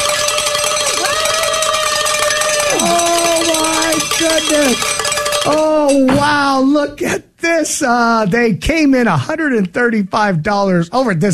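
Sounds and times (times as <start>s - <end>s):
bells ringing: 0.0s - 6.2s
speech: 4.2s - 11.3s.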